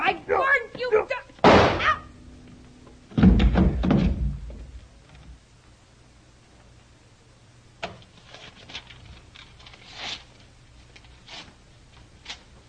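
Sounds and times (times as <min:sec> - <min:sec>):
gunshot: 0:01.4 - 0:02.0
heavy knocks and thuds: 0:03.1 - 0:04.9.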